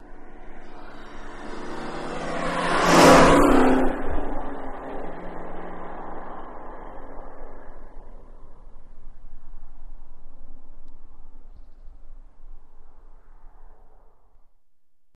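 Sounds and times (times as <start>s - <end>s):
Ford Mustang accelerating fast past on a highway: 0.0s - 11.5s.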